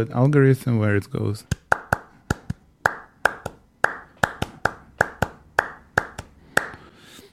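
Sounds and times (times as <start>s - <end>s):
speech: 0.0s - 1.6s
rhythmic hand clapping pattern: 1.5s - 6.9s.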